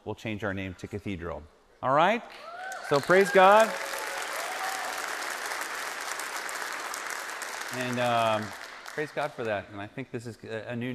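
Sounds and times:
speech: 0.1s - 4.0s, 7.7s - 10.9s
audience applause: 2.7s - 9.7s.

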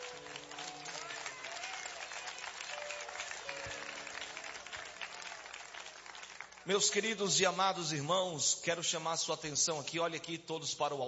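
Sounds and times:
audience applauding: 0.0s - 7.1s
speech: 6.6s - 11.0s.

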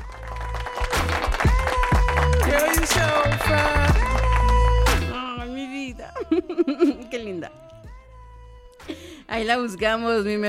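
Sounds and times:
applause: 0.0s - 5.2s
laughter: 6.2s - 7.3s
speech: 9.3s - 10.4s.

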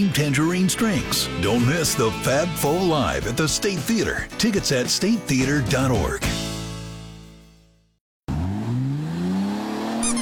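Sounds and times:
speech: 0.0s - 6.4s
car engine revving: 8.3s - 10.1s
tire squeak: 9.8s - 10.1s.

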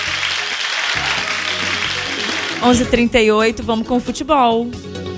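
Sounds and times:
applause: 0.0s - 2.8s
speech: 2.6s - 5.0s.

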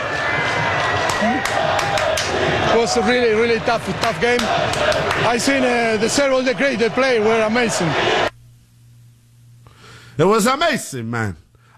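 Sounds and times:
crowd cheering at a Seattle soccer match: 0.0s - 8.4s
speech: 1.2s - 8.3s, 10.2s - 11.7s.

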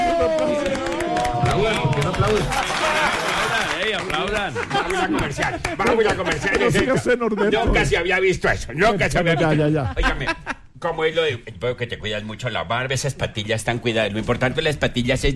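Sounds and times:
audience applause: 0.0s - 6.6s
crowd cheering and laughing: 0.0s - 8.0s, 9.0s - 10.7s
speech: 1.6s - 3.0s, 4.0s - 15.3s.

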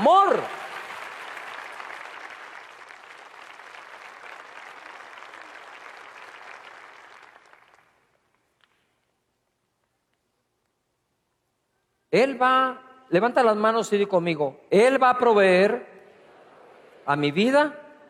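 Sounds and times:
crowd applause: 0.0s - 8.2s
speech: 12.1s - 15.9s, 17.0s - 17.8s.

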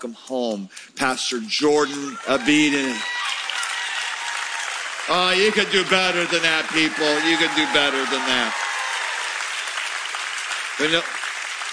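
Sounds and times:
speech: 0.0s - 3.3s, 5.1s - 8.6s, 10.8s - 11.2s
shout or whoop: 1.9s - 4.9s, 6.7s - 9.4s
crowd applause: 2.0s - 11.7s.

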